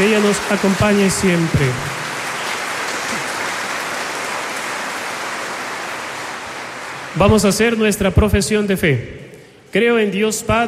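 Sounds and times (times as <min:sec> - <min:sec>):
speech: 0:00.0 - 0:02.0, 0:07.2 - 0:10.6
audience applause: 0:00.0 - 0:07.4.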